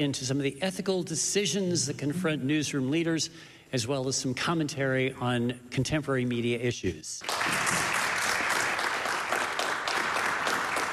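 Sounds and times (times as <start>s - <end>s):
speech: 0.0s - 7.8s
live audience of faculty and students applauding at the University at Albany: 7.2s - 10.9s.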